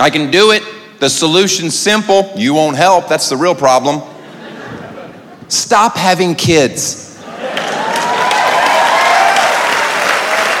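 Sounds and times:
speech: 0.0s - 4.1s, 5.5s - 7.6s
laughter: 4.1s - 5.5s, 7.2s - 8.2s
audience applause: 7.3s - 10.5s.

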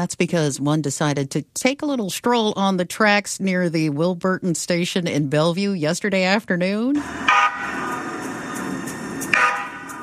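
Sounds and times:
speech: 0.0s - 7.7s
low rumble: 7.0s - 10.0s
train horn blowing: 7.3s - 7.9s, 9.3s - 10.0s.

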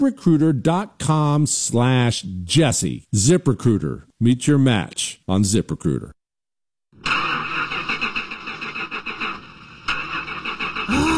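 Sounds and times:
speech: 0.0s - 6.2s
car engine cranking but failing to start: 7.0s - 11.1s.

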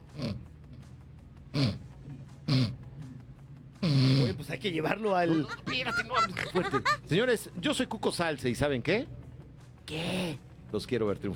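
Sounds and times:
person snoring: 1.5s - 1.9s, 2.5s - 2.8s, 3.8s - 4.4s
speech: 4.5s - 9.2s, 9.9s - 11.3s
laughter: 5.1s - 7.2s.

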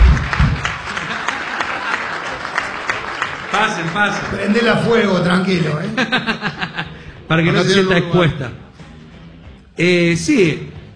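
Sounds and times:
audience applause: 0.0s - 5.6s
laughter: 0.0s - 7.9s
speech: 3.6s - 6.6s, 7.3s - 8.6s, 9.8s - 10.9s.

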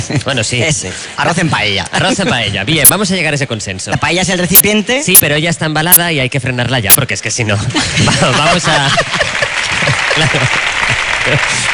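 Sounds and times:
speech: 0.1s - 9.4s, 10.2s - 11.7s
laughter: 7.7s - 11.1s
audience applause: 8.8s - 11.7s.

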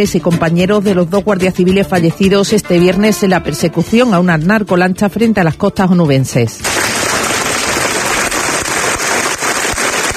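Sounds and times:
speech: 0.0s - 7.1s
applause from a large crowd as coffins arrive: 6.7s - 10.1s.

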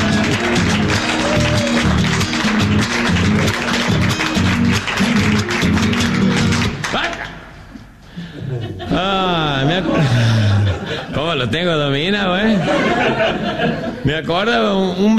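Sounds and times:
audience clapping: 0.0s - 7.6s
laughter: 8.2s - 11.4s, 12.4s - 14.1s
speech: 11.4s - 15.1s.

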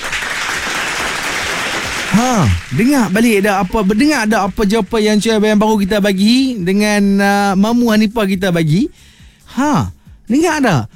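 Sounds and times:
applause: 0.0s - 5.0s
person calling out: 2.1s - 2.7s
speech: 2.1s - 10.9s.

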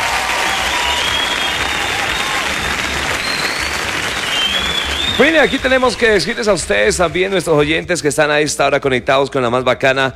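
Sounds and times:
crowd applause: 0.0s - 7.4s
speech: 5.2s - 10.1s.

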